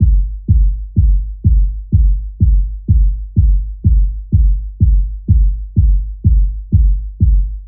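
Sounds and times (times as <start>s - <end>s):
kick drum: 0.0s - 7.6s.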